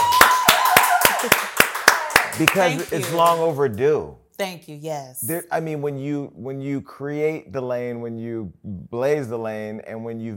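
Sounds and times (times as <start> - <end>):
people clapping: 0.0 - 3.9
speech: 2.4 - 10.3.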